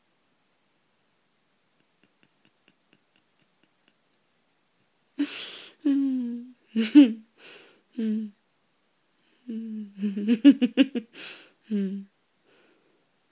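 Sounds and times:
giggling: 1.8 - 4.0, 5.2 - 7.3, 9.5 - 12.0.

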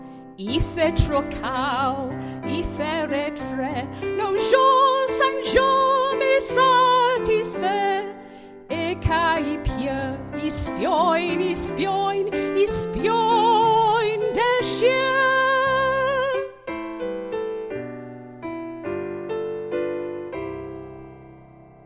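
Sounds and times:
piano: 0.0 - 21.8
person singing: 0.4 - 16.6.

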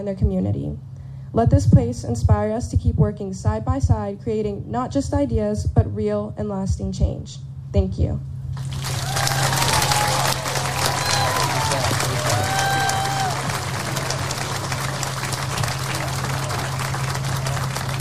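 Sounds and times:
speech: 0.0 - 8.9
audience applause: 8.6 - 17.9.

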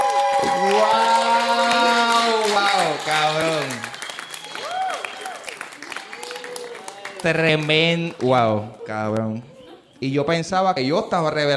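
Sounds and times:
audience applause: 0.0 - 8.8
speech: 7.2 - 11.5.

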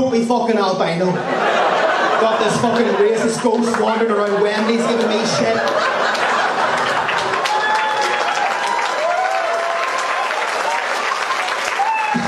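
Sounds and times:
speech: 0.0 - 6.2
laughter: 1.0 - 8.9
crowd applause: 1.4 - 12.2
whoops and cheers: 7.3 - 12.2.

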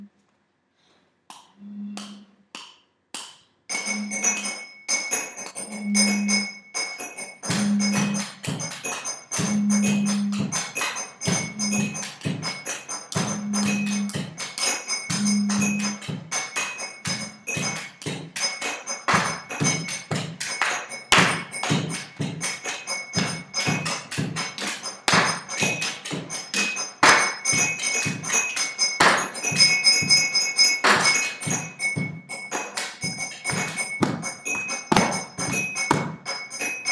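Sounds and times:
percussion: 1.3 - 36.9.

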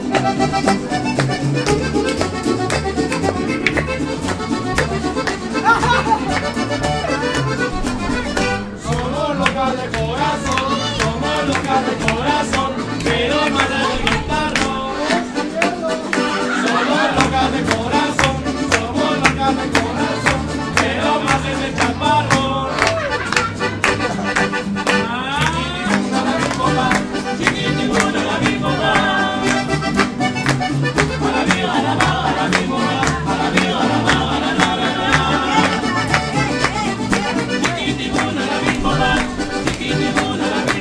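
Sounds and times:
mariachi music: 0.0 - 40.7
laughter: 4.9 - 7.7, 16.0 - 17.6, 22.6 - 24.6.

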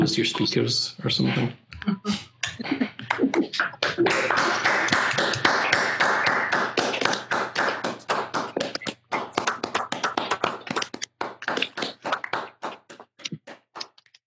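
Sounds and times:
speech: 0.0 - 2.9
applause over unmuted video-call microphones: 3.8 - 13.1.

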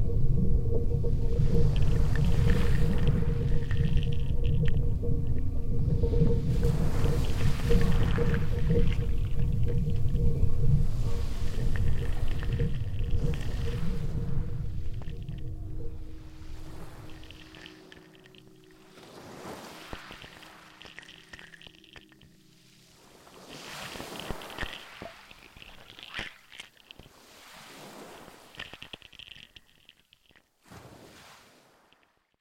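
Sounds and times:
electronic soundscape from Dungeness tower: 0.0 - 22.6.

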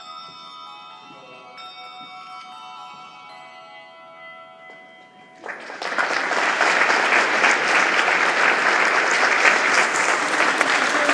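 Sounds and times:
sensor-operated bells ringing at eight churches in Leeds: 0.0 - 11.1.

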